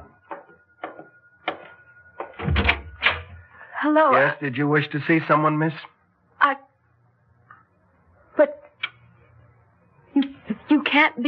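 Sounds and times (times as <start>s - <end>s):
door opening: 0.0s - 3.4s
speech: 3.8s - 6.6s, 11.0s - 11.2s.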